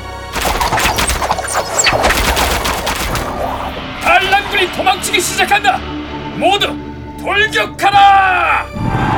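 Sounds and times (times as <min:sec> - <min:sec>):
volley of arrows being shot: 0:00.3 - 0:04.1
speech: 0:04.6 - 0:09.0.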